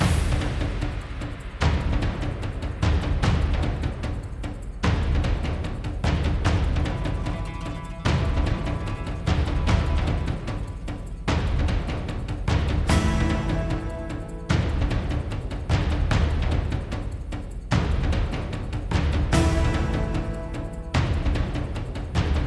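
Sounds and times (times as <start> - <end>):
combat percussion loop: 0.0 - 22.4.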